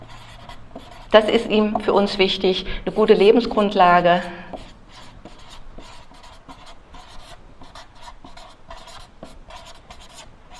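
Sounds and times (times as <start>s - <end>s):
pen scratching while handwriting a word: 0.0s - 2.1s, 4.5s - 10.5s
speech: 1.1s - 4.4s.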